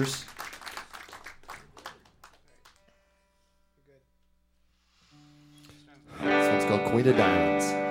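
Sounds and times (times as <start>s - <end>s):
speech: 0.0s - 0.4s, 6.9s - 7.8s
audience applause: 0.0s - 2.8s.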